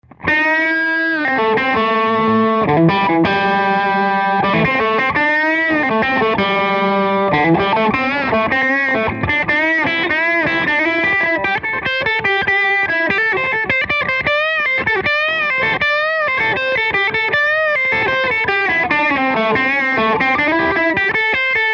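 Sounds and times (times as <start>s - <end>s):
guitar solo: 0.0s - 21.7s.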